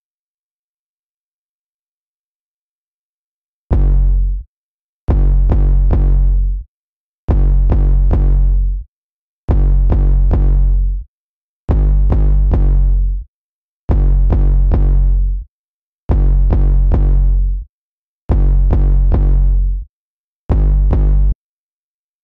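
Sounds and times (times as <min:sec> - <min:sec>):
bass: 0:03.7 - 0:04.5, 0:05.1 - 0:06.7, 0:07.3 - 0:08.9, 0:09.5 - 0:11.1, 0:11.7 - 0:13.3, 0:13.9 - 0:15.5, 0:16.1 - 0:17.7, 0:18.3 - 0:19.9, 0:20.5 - 0:21.4.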